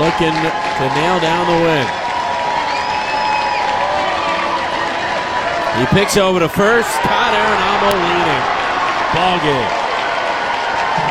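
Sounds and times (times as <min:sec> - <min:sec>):
baseball crowd cheering: 0:00.0 - 0:11.0
speech: 0:00.1 - 0:02.0, 0:05.8 - 0:09.8
whistle-like tones over crowd: 0:02.6 - 0:03.8.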